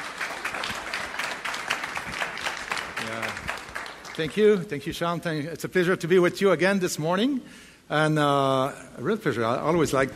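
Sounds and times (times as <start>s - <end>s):
audience applauding to welcome a speaker: 0.0s - 4.7s
speech: 4.2s - 10.1s.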